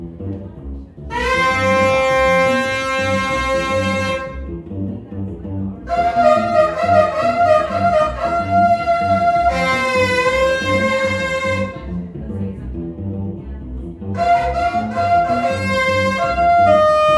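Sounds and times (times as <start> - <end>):
saxophone: 1.1 - 4.6, 5.9 - 12.1, 14.2 - 17.1.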